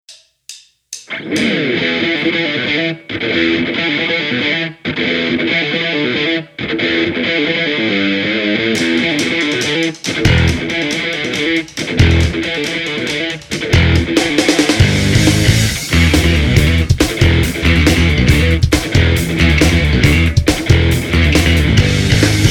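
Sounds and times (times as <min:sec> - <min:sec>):
musical riff: 0:01.1 - 0:22.4.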